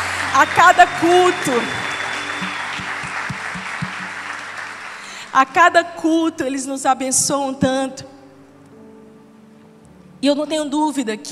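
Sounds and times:
audience applause: 0:00.0 - 0:05.4
speech: 0:00.4 - 0:01.8, 0:05.4 - 0:08.1, 0:10.2 - 0:11.3.

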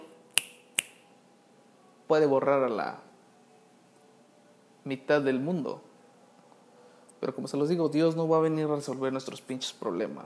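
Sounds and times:
finger snap: 0:00.0 - 0:01.1
speech: 0:02.1 - 0:03.1, 0:04.8 - 0:05.9, 0:07.2 - 0:10.2.

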